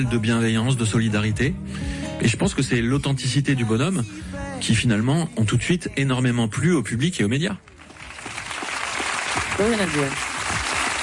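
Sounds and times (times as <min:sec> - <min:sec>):
speech: 0:00.0 - 0:07.7, 0:09.6 - 0:10.3
crowd applause: 0:07.7 - 0:11.0.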